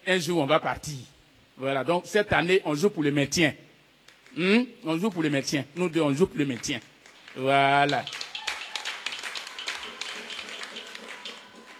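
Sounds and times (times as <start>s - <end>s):
speech: 0.0s - 3.7s, 4.3s - 8.2s
audience applause: 6.5s - 11.7s.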